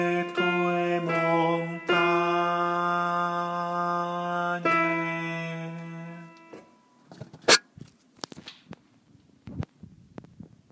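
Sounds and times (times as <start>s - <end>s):
contralto voices singing: 0.0s - 6.4s.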